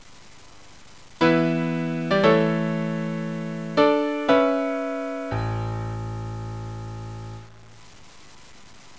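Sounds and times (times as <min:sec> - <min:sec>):
piano theme: 0:01.2 - 0:07.5.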